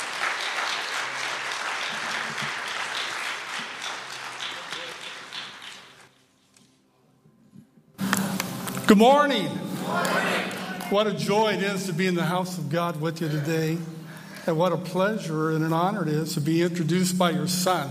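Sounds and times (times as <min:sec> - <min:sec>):
audience applause welcoming a guest speaker at a church service: 0:00.0 - 0:06.1, 0:09.8 - 0:11.1
speech: 0:08.9 - 0:17.8.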